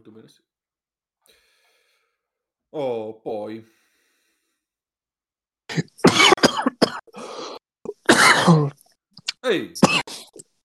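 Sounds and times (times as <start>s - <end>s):
speech: 0.0s - 0.6s, 2.7s - 3.8s, 5.7s - 6.3s, 9.4s - 10.2s
coughing fit after suddenly choking: 5.7s - 8.8s, 9.8s - 10.5s.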